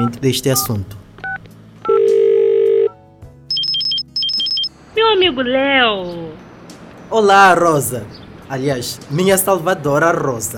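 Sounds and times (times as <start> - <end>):
speech: 0.1 - 1.0, 5.2 - 6.4, 7.1 - 10.5
long steady telephone tone while calling someone: 1.9 - 4.7
rapid high telephone beeps alternating between two pitches: 3.5 - 4.7.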